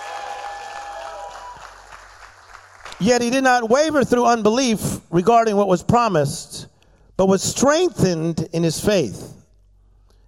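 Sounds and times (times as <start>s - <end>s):
audience clapping and shouting: 0.0s - 3.0s
speech: 3.0s - 6.6s, 7.2s - 9.4s.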